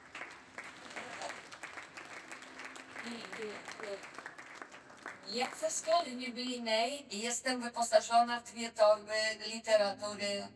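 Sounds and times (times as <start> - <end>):
audience applause at a church gathering: 0.0 - 6.2
speech: 3.1 - 4.2, 5.3 - 10.5.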